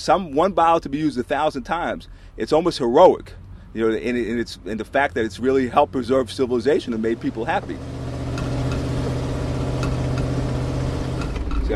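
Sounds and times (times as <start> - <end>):
speech: 0.0 - 8.0
old truck engine running: 0.0 - 11.7
rattles: 7.1 - 11.7.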